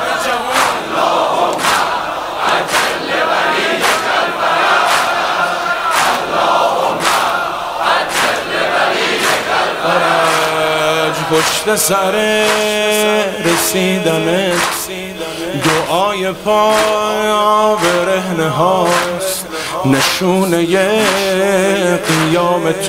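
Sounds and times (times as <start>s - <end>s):
sharp rhythmic beats: 0.0s - 18.2s
large crowd of young people chanting at a religious gathering: 0.0s - 22.8s
speech: 11.3s - 14.9s, 15.5s - 19.1s, 19.8s - 22.8s.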